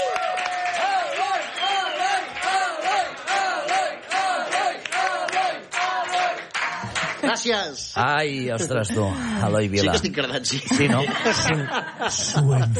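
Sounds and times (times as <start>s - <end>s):
crowd whooping and cheering: 0.0s - 3.7s
audience applause: 0.0s - 7.5s
speech: 7.3s - 12.7s
laughter: 8.4s - 12.7s.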